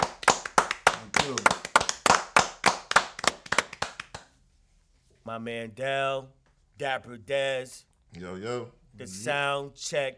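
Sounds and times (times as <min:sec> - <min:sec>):
people clapping for sound check: 0:00.0 - 0:04.4
speech: 0:05.3 - 0:10.1.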